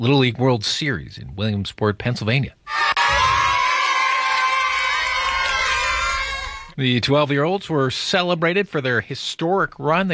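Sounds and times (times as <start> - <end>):
speech: 0.0 - 3.0, 6.8 - 10.1
crowd cheering team's homecoming: 2.7 - 6.8.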